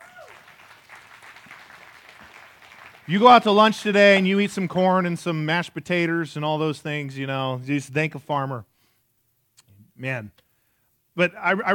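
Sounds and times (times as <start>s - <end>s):
church congregation clapping for farmers: 0.0s - 4.2s
speech: 3.1s - 8.7s, 10.0s - 10.4s, 11.2s - 11.7s.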